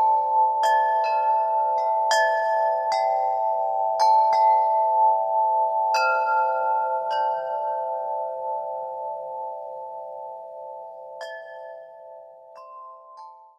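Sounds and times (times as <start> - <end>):
large wind chime in summer: 0.0 - 13.5.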